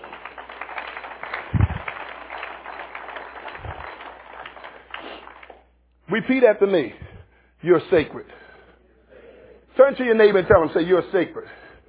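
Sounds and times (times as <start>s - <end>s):
audience clapping: 0.0s - 5.8s
low thumps: 1.5s - 1.9s
speech: 6.1s - 7.0s, 7.6s - 8.4s, 9.8s - 11.6s.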